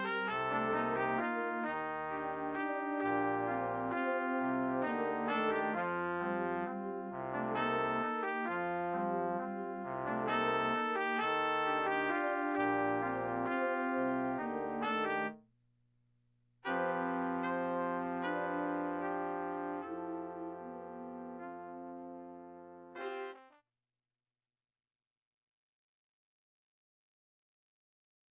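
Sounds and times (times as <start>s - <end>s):
brass playing: 0.0s - 15.4s, 16.7s - 23.5s.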